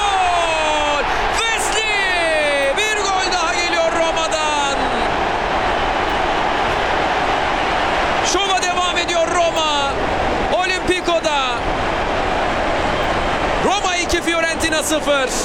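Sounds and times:
continuous excited football commentary: 0:00.0 - 0:05.6, 0:08.2 - 0:11.8, 0:13.5 - 0:15.4
stadium crowd roaring at a Roma football match after a goal: 0:00.0 - 0:15.4.

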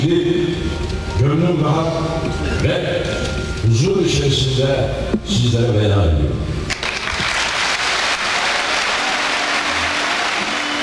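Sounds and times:
speech: 0:00.0 - 0:00.4, 0:01.2 - 0:06.6
standing ovation applause from a large crowd: 0:06.7 - 0:10.8.

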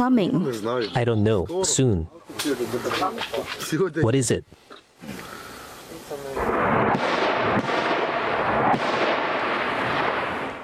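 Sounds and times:
speech: 0:00.0 - 0:05.4
loud explosions near a front line: 0:06.3 - 0:10.6.

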